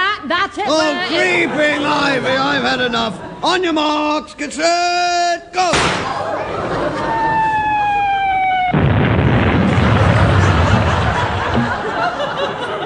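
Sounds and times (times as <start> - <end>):
speech: 0.3 - 6.7
laughter: 0.7 - 3.5, 6.0 - 8.3, 9.8 - 12.8
naval gun blast from Home Fleet warships: 5.7 - 6.3, 8.7 - 11.9
falling whistling tone: 7.2 - 8.8.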